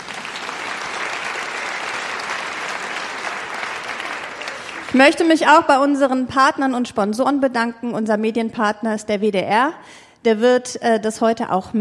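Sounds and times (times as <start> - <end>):
audience applause: 0.0 - 5.0
speech: 4.9 - 11.7.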